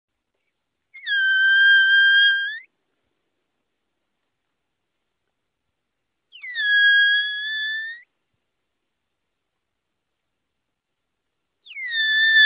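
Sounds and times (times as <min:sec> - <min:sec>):
rock hyrax wailing and chirping: 0:01.0 - 0:02.7, 0:06.3 - 0:08.1, 0:11.6 - 0:12.4.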